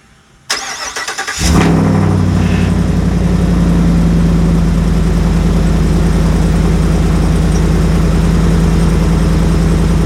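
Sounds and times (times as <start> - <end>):
2022 6.6 gas straight-piped truck engine idling: 2.1 - 10.0.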